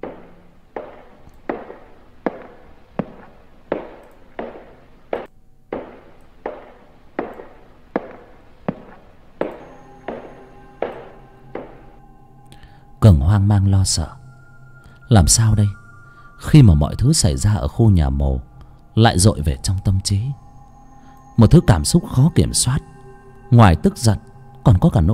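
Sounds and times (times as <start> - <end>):
steady footsteps on a wooden floor: 8.0 - 10.2
speech: 13.1 - 14.2, 15.1 - 15.8, 16.4 - 20.4, 21.4 - 25.1.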